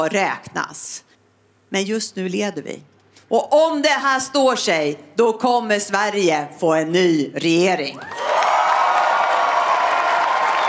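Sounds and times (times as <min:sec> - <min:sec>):
speech: 0:00.0 - 0:01.1, 0:01.7 - 0:08.5
crowd roaring cheers and applause at a Swedish Left Party leader's election night speech: 0:08.0 - 0:10.6.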